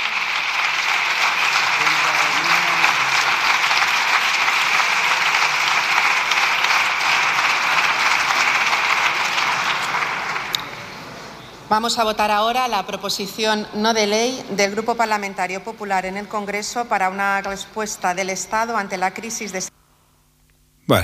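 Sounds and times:
loud audience applause: 0:00.0 - 0:11.2
speech: 0:11.7 - 0:19.7.

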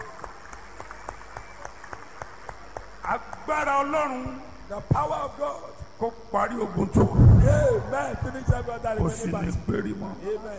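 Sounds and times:
church congregation clapping rhythmically: 0:00.0 - 0:04.8
speech: 0:03.1 - 0:10.5.

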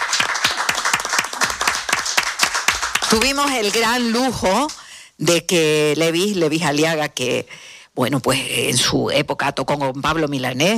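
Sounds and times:
applause: 0:00.0 - 0:04.9
speech: 0:03.1 - 0:10.7.

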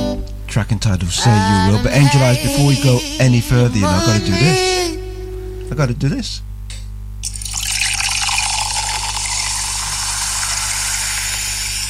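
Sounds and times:
low steady hum: 0:00.0 - 0:11.8
speech: 0:00.5 - 0:05.0, 0:05.7 - 0:06.5
drink poured into a glass: 0:07.2 - 0:11.8.

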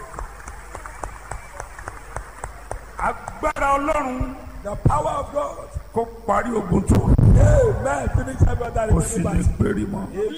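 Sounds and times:
audience clapping: 0:00.0 - 0:04.1
speech: 0:03.0 - 0:10.3.

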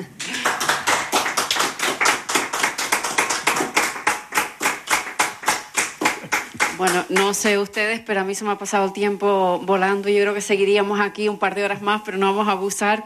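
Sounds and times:
audience applause: 0:00.2 - 0:06.9
speech: 0:06.8 - 0:13.0.

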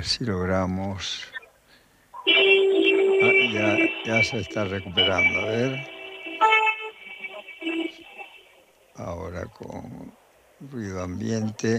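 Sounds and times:
speech: 0:00.0 - 0:01.4, 0:03.2 - 0:06.0, 0:09.0 - 0:11.7
car horns honking in a street: 0:02.3 - 0:08.5.

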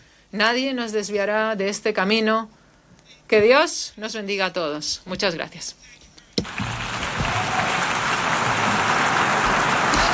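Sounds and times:
speech: 0:00.3 - 0:02.6, 0:03.3 - 0:06.7
assembly applause: 0:06.4 - 0:10.1.

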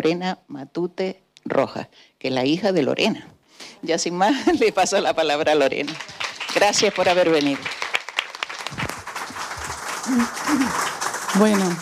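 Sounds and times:
speech: 0:00.0 - 0:07.9, 0:10.1 - 0:11.8
audience applause: 0:05.8 - 0:11.8.

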